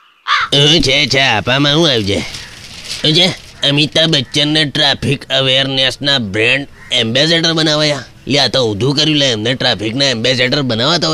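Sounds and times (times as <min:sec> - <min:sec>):
crow cawing: 0:00.0 - 0:00.8, 0:02.2 - 0:04.7, 0:06.4 - 0:08.1
speech: 0:00.5 - 0:11.1.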